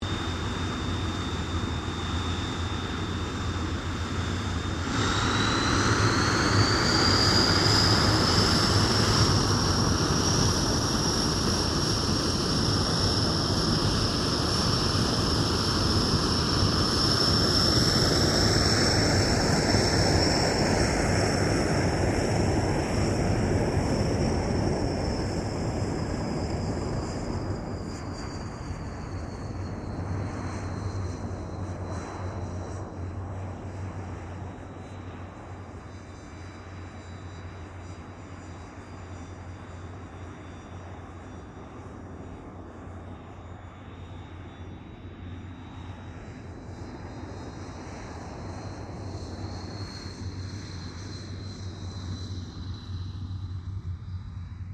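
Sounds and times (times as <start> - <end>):
CA-27 Sabre aircraft taxiing: 0.0 - 54.7.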